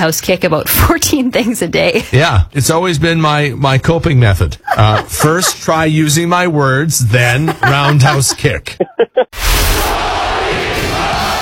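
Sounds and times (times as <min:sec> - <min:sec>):
speech: 0:00.0 - 0:09.4
laughter: 0:04.6 - 0:05.9, 0:07.2 - 0:09.4
Russian crowd chanting an American's name: 0:09.7 - 0:11.4.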